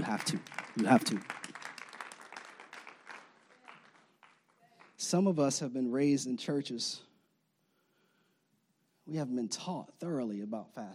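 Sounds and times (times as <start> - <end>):
speech: 0.0 - 1.4, 5.0 - 7.1, 9.1 - 10.9
audience clapping: 0.0 - 5.4.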